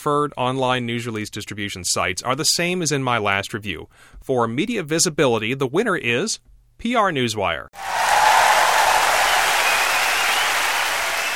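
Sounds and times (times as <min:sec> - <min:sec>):
speech: 0:00.0 - 0:07.9
applause: 0:07.8 - 0:11.3.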